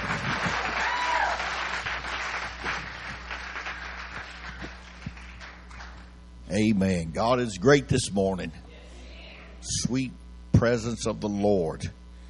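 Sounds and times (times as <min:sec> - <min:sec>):
church congregation clapping in welcome of a guest preacher: 0:00.0 - 0:06.2
speech: 0:06.5 - 0:08.6, 0:09.8 - 0:12.0.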